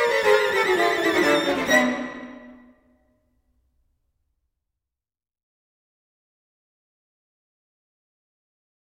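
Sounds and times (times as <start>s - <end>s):
string quartet playing allegro grazioso: 0.0s - 3.0s.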